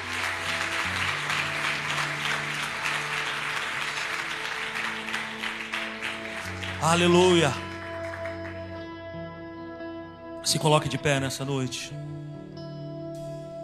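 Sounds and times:
audience applause: 0:00.0 - 0:08.8
speech: 0:06.8 - 0:07.6, 0:10.5 - 0:12.2.

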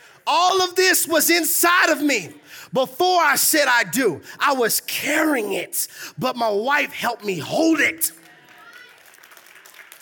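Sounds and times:
speech: 0:00.3 - 0:08.2
soft scattered audience applause: 0:08.1 - 0:10.0.

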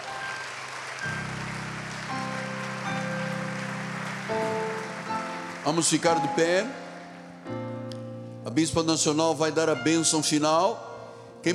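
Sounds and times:
church audience applause: 0:00.0 - 0:07.4
sustained keyboard chords: 0:00.0 - 0:10.8
speech: 0:05.6 - 0:06.8, 0:08.6 - 0:11.5.

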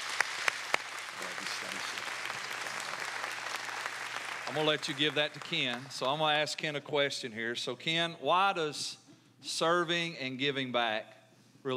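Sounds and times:
audience applause: 0:00.0 - 0:06.4
speech: 0:04.5 - 0:11.7.

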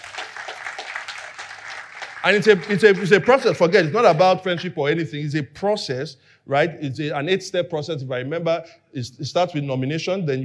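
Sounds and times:
audience clapping: 0:00.0 - 0:04.8
speech: 0:02.2 - 0:10.4.

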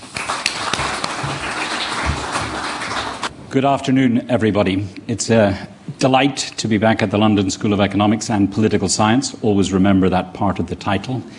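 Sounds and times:
audience applause: 0:00.0 - 0:03.3
speech: 0:03.5 - 0:11.3.

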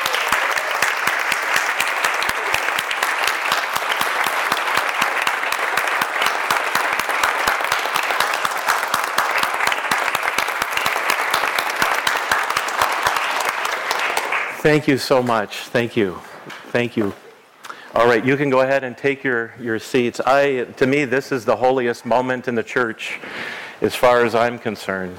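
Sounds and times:
church congregation applause at a Rite of Confirmation service: 0:00.0 - 0:15.4
speech: 0:14.6 - 0:17.2, 0:18.0 - 0:25.1.

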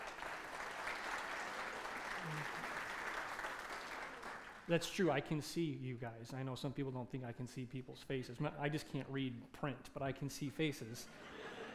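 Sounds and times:
congregation applause in a church worship center: 0:00.0 - 0:04.9
speech: 0:04.7 - 0:11.5
laughter: 0:11.1 - 0:11.7.

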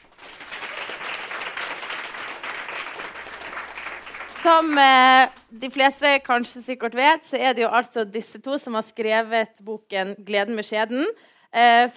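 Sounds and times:
audience applauding: 0:00.0 - 0:05.1
speech: 0:04.4 - 0:11.9.

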